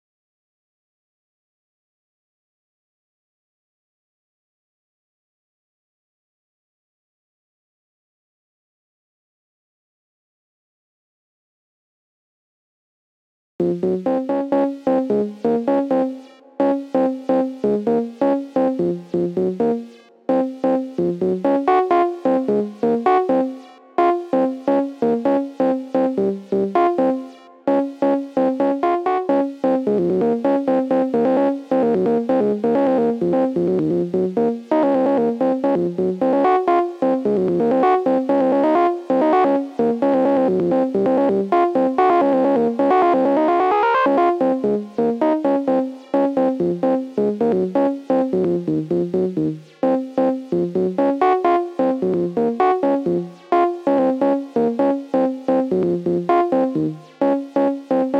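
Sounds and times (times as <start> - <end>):
melody: 13.6 - 58.1.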